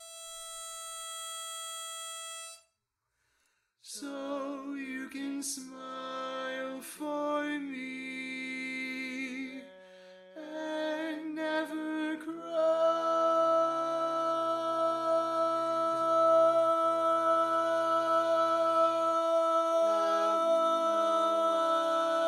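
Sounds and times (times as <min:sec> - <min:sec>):
barbershop tags lead voice: 0:03.9 - 0:09.7, 0:10.3 - 0:22.2.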